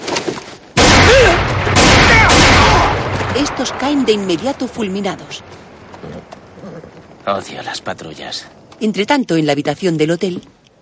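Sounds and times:
gunfire in a western film shootout: 0.8s - 6.0s
speech: 3.6s - 6.3s, 7.2s - 10.8s.

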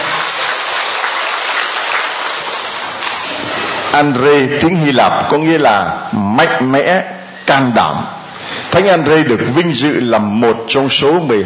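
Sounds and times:
audience applauding loudly: 0.0s - 3.9s
speech: 4.0s - 8.1s, 8.7s - 11.4s.

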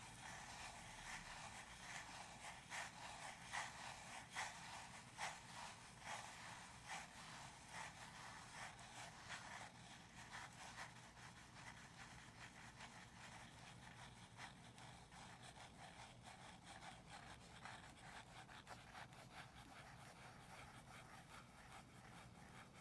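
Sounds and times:
gentle tapping and scratching: 0.0s - 22.7s.

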